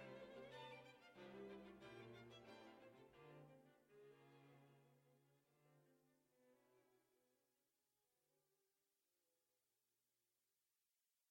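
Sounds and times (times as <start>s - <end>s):
string quartet: 0.0s - 7.0s.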